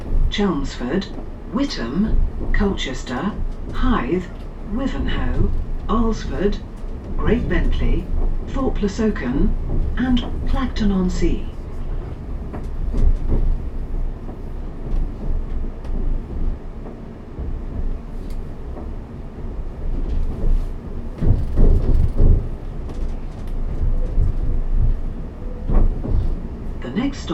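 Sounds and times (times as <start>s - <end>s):
commuter train rumbling: 0.0s - 27.3s
carriages rattling and clanking: 0.2s - 16.6s, 20.0s - 27.3s
speech: 0.4s - 11.5s.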